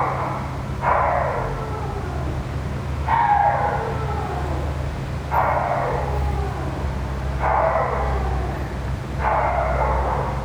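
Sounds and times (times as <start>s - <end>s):
dog whining: 1.1s - 10.4s.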